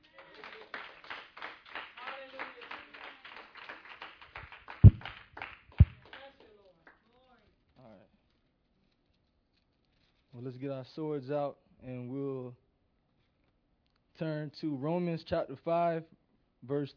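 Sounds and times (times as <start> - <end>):
audience hand clapping: 0.0 - 7.0
speech: 10.4 - 12.6, 14.2 - 16.9.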